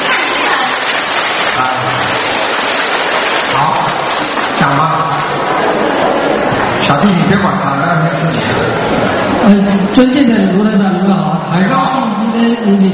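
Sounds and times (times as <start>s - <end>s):
audience applause: 0.0s - 6.5s
speech: 6.9s - 12.9s.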